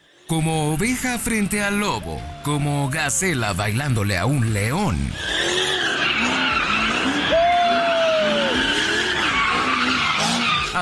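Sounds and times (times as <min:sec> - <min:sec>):
car engine roar: 0:00.0 - 0:10.8
speech: 0:00.3 - 0:05.5
car tires skidding while spinning street donuts: 0:01.0 - 0:10.8.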